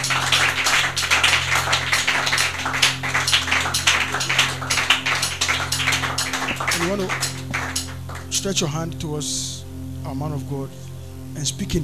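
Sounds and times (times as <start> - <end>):
crowd clapping hands: 0.0 - 8.5
low steady hum: 0.0 - 11.8
speech: 6.9 - 7.3, 8.4 - 11.8.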